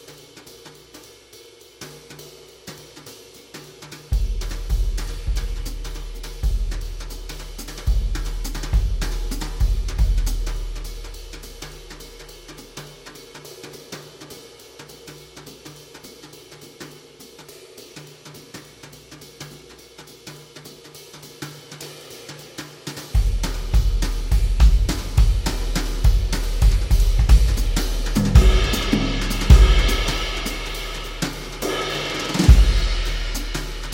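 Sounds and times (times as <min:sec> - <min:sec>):
energetic jazz music: 0:04.2 - 0:14.2, 0:23.2 - 0:33.9.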